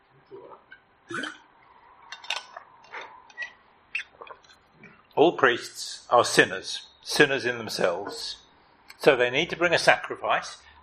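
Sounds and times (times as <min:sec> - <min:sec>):
sipping water from a glass: 0:00.4 - 0:05.2
speech: 0:05.2 - 0:08.4, 0:09.0 - 0:10.6.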